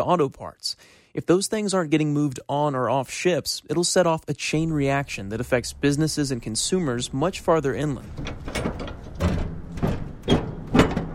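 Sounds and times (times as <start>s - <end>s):
speech: 0.0s - 8.9s
heavy door of an empty 40-foot shipping container closing: 4.6s - 11.1s.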